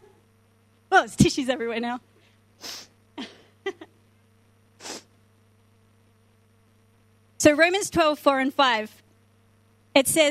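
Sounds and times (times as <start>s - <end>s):
steady low hum: 0.0s - 9.9s
speech: 1.0s - 2.8s, 7.4s - 9.0s, 10.0s - 10.2s
short hissy sniffs through the nose: 2.6s - 2.9s, 4.8s - 5.1s.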